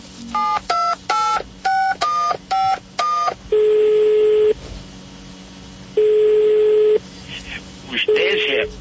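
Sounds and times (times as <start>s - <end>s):
phone ringing tones on the line: 0.2s - 4.6s, 6.0s - 7.0s, 8.0s - 8.7s.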